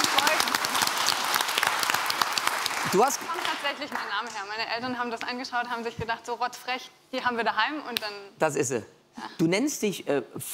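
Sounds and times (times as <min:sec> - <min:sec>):
audience applause on a German show: 0:00.0 - 0:04.1
speech: 0:02.8 - 0:10.5.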